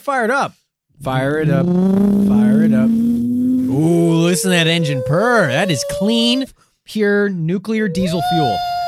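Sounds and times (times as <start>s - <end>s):
speech: 0.0s - 3.0s, 3.8s - 8.7s
bunker alarm kettle siren: 1.4s - 6.5s, 7.8s - 8.6s.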